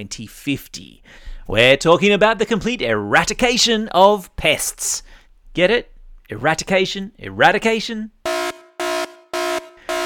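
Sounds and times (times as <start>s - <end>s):
speech: 0.0s - 8.4s
air horn alarm blasts: 8.2s - 10.0s.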